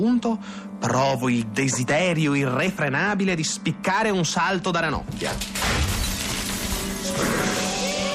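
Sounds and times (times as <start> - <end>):
speech: 0.0 - 5.9
chandelier falling to the floor and shattering: 5.4 - 8.0.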